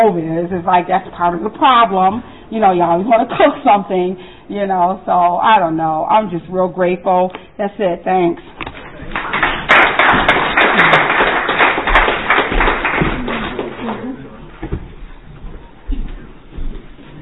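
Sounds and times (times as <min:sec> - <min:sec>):
speech: 0:00.0 - 0:08.6
audience applause: 0:08.7 - 0:14.2.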